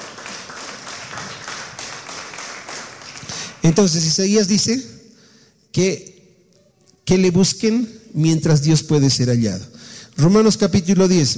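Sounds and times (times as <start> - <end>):
audience applauding: 0.0 - 3.8
speech: 3.6 - 5.0, 5.8 - 6.1, 7.1 - 11.3.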